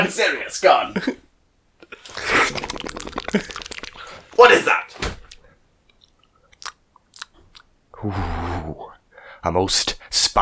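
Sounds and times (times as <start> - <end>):
speech: 0.0 - 1.2, 1.9 - 3.6, 4.4 - 5.1, 8.0 - 10.4
crisp chewing as someone tastes food: 1.8 - 4.4, 5.2 - 7.8.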